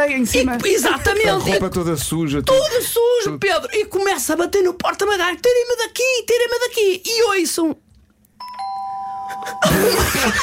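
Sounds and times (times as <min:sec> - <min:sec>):
speech: 0:00.0 - 0:07.8, 0:09.6 - 0:10.4
doorbell ringing with a two-note ding-dong chime: 0:08.4 - 0:09.6.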